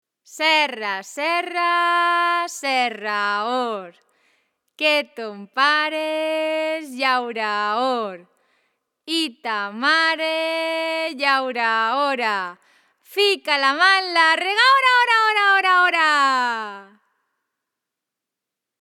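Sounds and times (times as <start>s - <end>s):
children's song: 0.3s - 3.9s, 4.8s - 8.2s, 9.1s - 17.0s.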